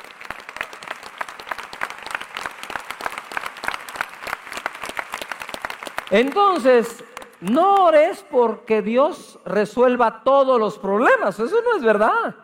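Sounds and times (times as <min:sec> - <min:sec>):
large crowd clapping loudly: 0:00.0 - 0:08.2
speech: 0:06.1 - 0:12.4.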